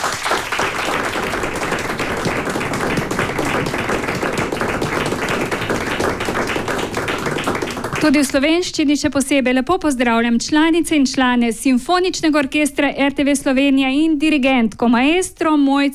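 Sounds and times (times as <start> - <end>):
applause: 0.0 - 8.6
speech: 8.0 - 15.9.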